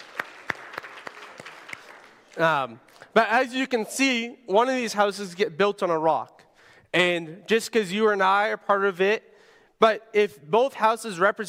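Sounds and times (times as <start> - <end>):
sparse applause: 0.0 - 2.7
speech: 2.4 - 11.4.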